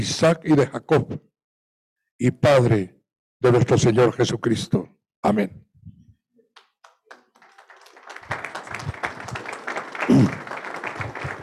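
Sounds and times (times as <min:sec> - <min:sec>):
speech: 0:00.0 - 0:01.3, 0:02.2 - 0:05.6
crowd applause: 0:06.6 - 0:11.4.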